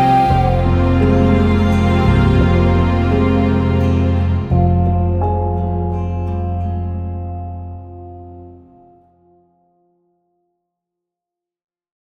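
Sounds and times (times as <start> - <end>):
instrumental music: 0.0 - 9.4.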